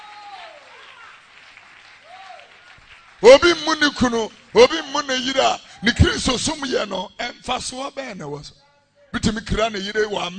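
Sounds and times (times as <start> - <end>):
audience clapping: 0.0 - 7.2
speech: 3.2 - 10.3.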